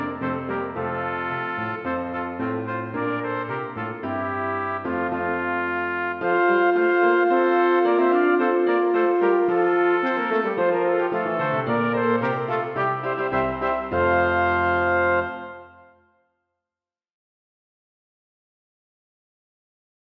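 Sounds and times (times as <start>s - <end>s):
two trumpets: 0.0s - 16.1s
horn: 0.0s - 16.2s
piano: 0.0s - 16.2s.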